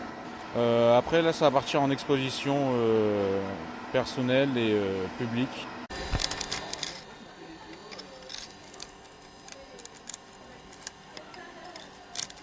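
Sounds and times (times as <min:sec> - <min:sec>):
speech: 0:00.5 - 0:05.7
glass pliers snapping off excess cut glass in a stained-glass workshop: 0:08.0 - 0:12.4.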